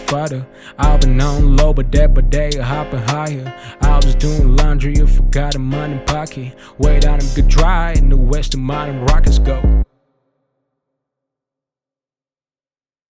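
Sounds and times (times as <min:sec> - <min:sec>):
freestyle beatboxing: 0:00.0 - 0:09.8.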